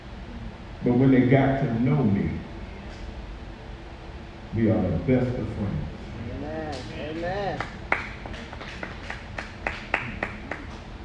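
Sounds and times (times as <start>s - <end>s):
low murmur of noise: 0.0s - 11.0s
speech: 0.8s - 3.0s, 4.5s - 7.7s
scattered audience clapping: 6.7s - 10.9s.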